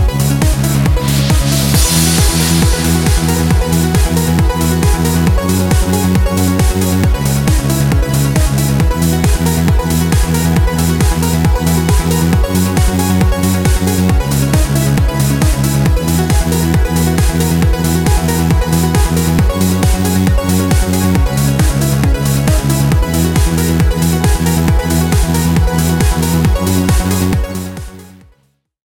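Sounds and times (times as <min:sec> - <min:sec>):
electronic dance music riffs: 0:00.0 - 0:28.4.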